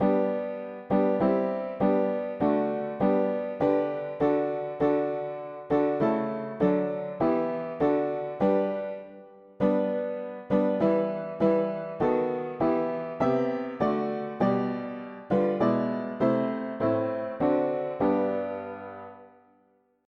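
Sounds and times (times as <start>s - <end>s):
mono piano: 0.0s - 20.0s.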